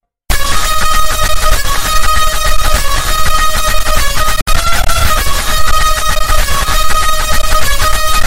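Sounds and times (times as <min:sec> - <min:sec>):
distorted loud Indian audio: 0:00.3 - 0:08.2.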